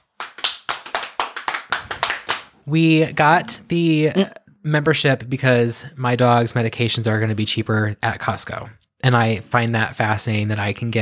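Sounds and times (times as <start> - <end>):
hands clapping: 0.0 - 2.8
speech: 2.6 - 11.0.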